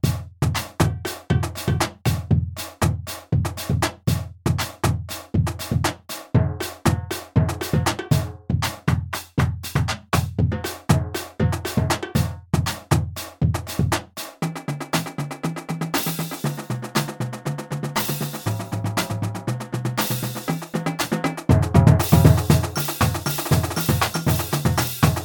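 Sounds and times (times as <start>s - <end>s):
club drum: 0.0s - 25.2s.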